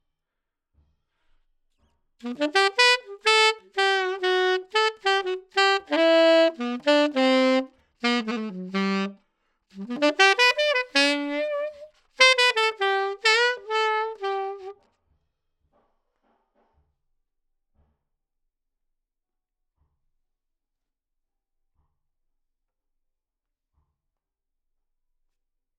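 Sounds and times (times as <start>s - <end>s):
saxophone recorded with RCA 44BX microphone: 2.2s - 9.2s, 9.8s - 14.8s.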